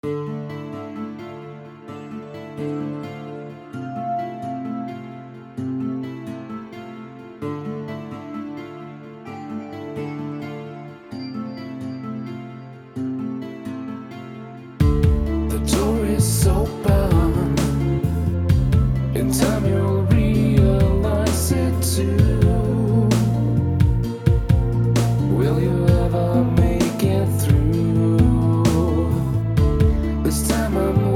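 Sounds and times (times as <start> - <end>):
gloomy music: 0.0 - 31.1.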